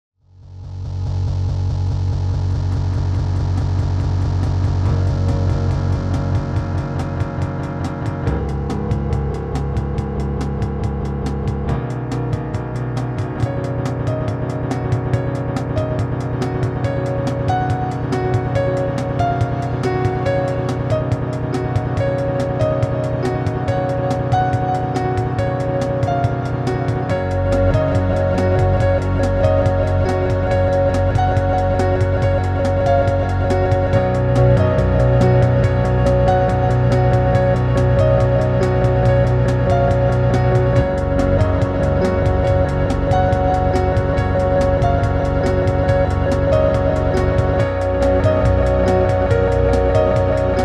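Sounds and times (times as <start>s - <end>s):
drums: 0.8s - 50.6s.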